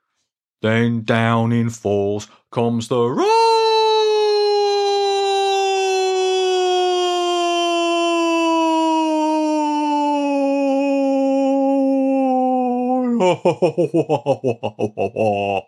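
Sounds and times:
speech: 0.6 - 3.4, 13.4 - 15.6
voice imitating a descending high scream: 3.2 - 13.5
laughter: 13.0 - 15.6.

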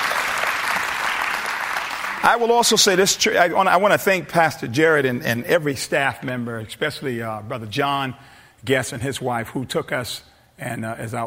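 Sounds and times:
audience applause: 0.0 - 3.1
speech: 2.2 - 11.2.

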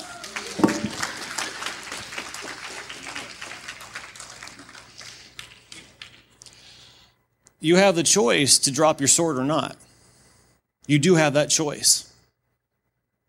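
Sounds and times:
audience applauding: 0.0 - 6.2
speech: 7.6 - 9.8, 10.9 - 12.1.

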